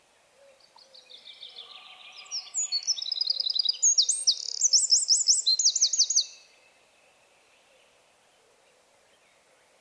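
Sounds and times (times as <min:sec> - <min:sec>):
Eurasian wren Troglodytes troglodytes singing: 0:00.8 - 0:06.5.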